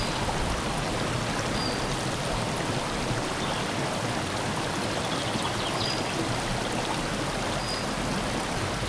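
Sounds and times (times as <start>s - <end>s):
stream flowing in Visegrad: 0.0s - 8.8s
wind from the left in Visegrad: 0.0s - 8.8s.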